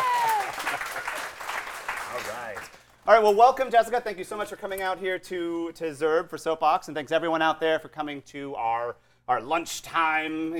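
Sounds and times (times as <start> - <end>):
audience applause at a lunchtime talk event: 0.0 - 3.0
speech: 2.2 - 10.5.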